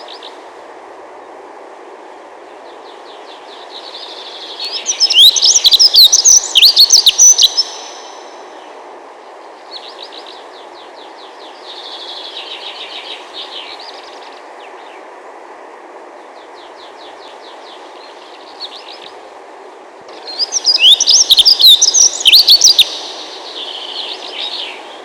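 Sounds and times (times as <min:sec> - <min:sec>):
dunnock singing thin notes, trills and jangling burst: 0:02.6 - 0:08.8, 0:09.5 - 0:15.1, 0:16.4 - 0:19.2, 0:20.1 - 0:25.0.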